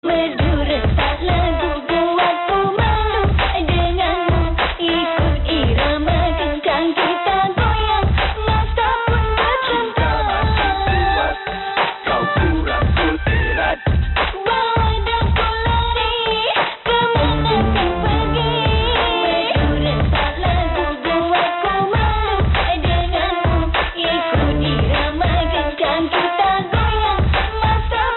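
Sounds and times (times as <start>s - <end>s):
Malay song remix: 0.0s - 28.1s.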